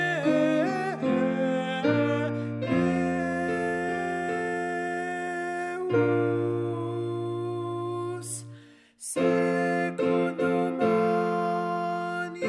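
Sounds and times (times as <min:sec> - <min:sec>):
alto voice singing: 0:00.0 - 0:12.4.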